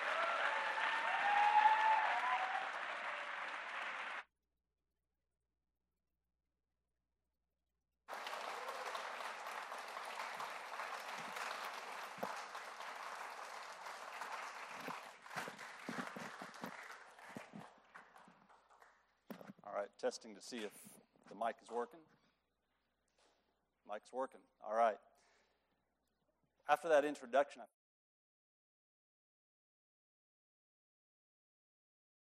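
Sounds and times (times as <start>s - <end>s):
audience applause: 0.0s - 4.2s, 8.1s - 19.0s
speech: 20.0s - 22.0s, 24.0s - 25.0s, 26.7s - 27.8s.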